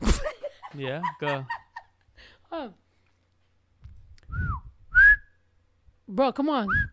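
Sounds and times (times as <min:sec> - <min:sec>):
laughter: 0:00.0 - 0:02.0
speech: 0:00.8 - 0:01.6, 0:02.5 - 0:02.8, 0:06.1 - 0:06.9
person whistling: 0:04.3 - 0:05.4, 0:06.7 - 0:06.9.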